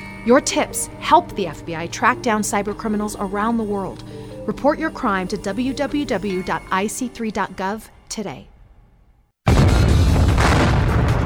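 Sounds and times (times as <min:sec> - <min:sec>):
speech: 0:00.2 - 0:08.5
explosion sound effect in a store sale advert: 0:09.5 - 0:11.2.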